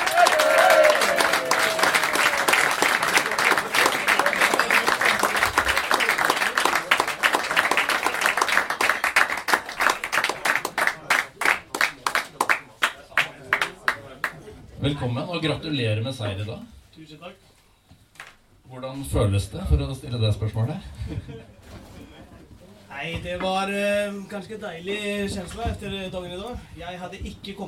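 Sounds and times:
live audience applause: 0:00.0 - 0:14.4
speech: 0:15.0 - 0:17.5, 0:18.8 - 0:21.6, 0:23.0 - 0:27.6.

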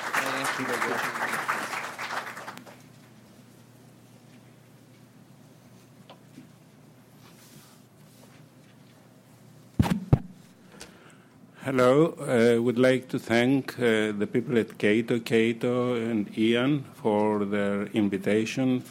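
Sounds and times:
audience applause welcoming a speaker: 0:00.0 - 0:02.9
speech: 0:00.4 - 0:01.8, 0:11.7 - 0:18.9
sharp thumps: 0:09.8 - 0:10.4.

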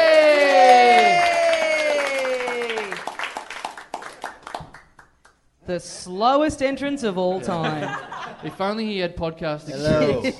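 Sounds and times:
live audience cheering as a comedian comes onstage: 0:00.0 - 0:03.2
scattered audience clapping: 0:00.0 - 0:05.4
speech: 0:05.7 - 0:10.3
laughter: 0:07.3 - 0:08.7, 0:09.8 - 0:10.3.

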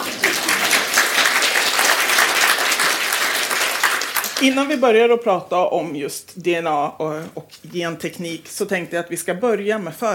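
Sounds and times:
spontaneous applause from audience: 0:00.0 - 0:04.7
speech: 0:04.4 - 0:10.1.

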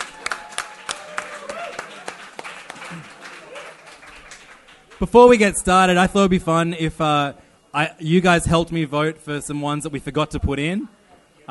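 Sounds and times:
audience applause: 0:00.0 - 0:05.1
speech: 0:05.0 - 0:11.4.

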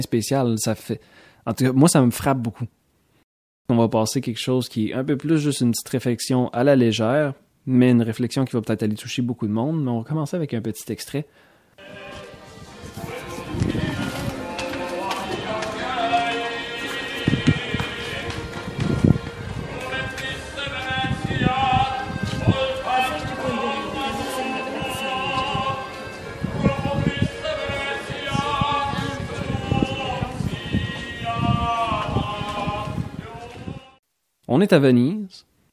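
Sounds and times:
speech: 0:00.0 - 0:02.8, 0:03.7 - 0:12.2, 0:34.5 - 0:35.5
accordion accompaniment: 0:11.8 - 0:33.6
faint outdoor bustle: 0:11.8 - 0:33.9
man singing a street song by a Venice canal: 0:11.8 - 0:34.0.

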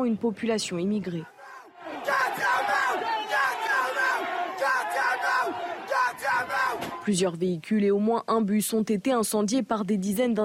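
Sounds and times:
speech: 0:00.0 - 0:01.4, 0:07.1 - 0:10.4
rioting crowd shouting in the street: 0:01.2 - 0:07.1.

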